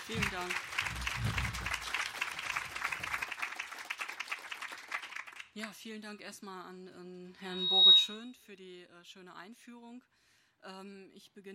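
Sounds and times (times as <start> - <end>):
audience applause: 0.0 - 5.5
speech: 0.1 - 1.7, 5.6 - 11.5.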